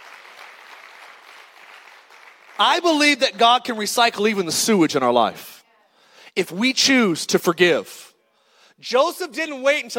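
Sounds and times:
audience hand clapping: 0.0 - 3.3
speech: 2.6 - 5.6, 6.4 - 8.1, 8.8 - 9.9.

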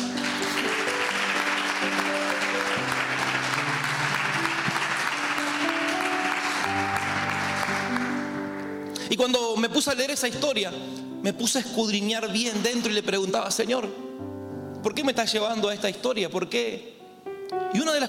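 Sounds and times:
audience applause: 0.0 - 8.6
sustained keyboard chords: 0.0 - 9.3, 13.8 - 15.1, 17.0 - 18.0
speech: 9.1 - 14.0, 14.8 - 16.9, 17.5 - 18.0.

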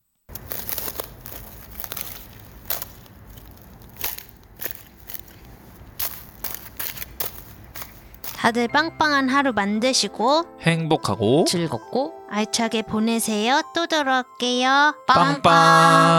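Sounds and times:
footsteps crunching on ice: 0.3 - 8.5
speech: 8.4 - 16.1.

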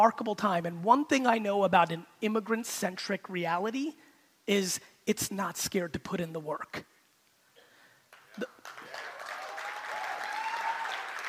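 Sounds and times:
speech: 0.0 - 6.9, 8.4 - 8.6
audience applause: 8.1 - 11.2.

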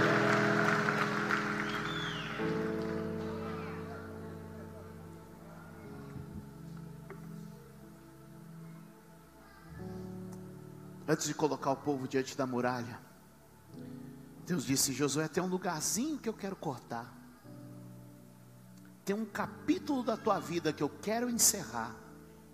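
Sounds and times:
audience applauding and cheering: 0.0 - 4.4
sustained keyboard chords: 0.0 - 22.5
speech: 11.1 - 13.1, 14.5 - 17.2, 19.1 - 22.0.

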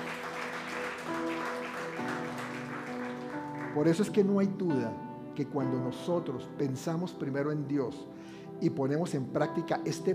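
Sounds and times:
audience applause: 0.0 - 4.2
sustained keyboard chords: 0.0 - 10.1
speech: 3.8 - 10.1.

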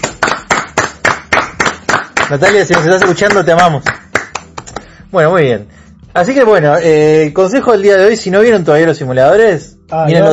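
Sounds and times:
applause: 0.0 - 4.9
speech: 2.3 - 4.0, 5.1 - 10.3.

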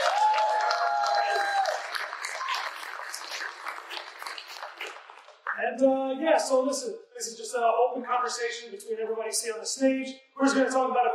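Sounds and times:
audience applause: 0.0 - 5.5
speech: 5.8 - 11.1.

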